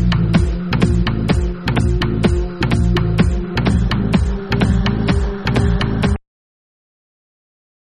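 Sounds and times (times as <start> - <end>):
dub guitar: 0.0 - 6.2.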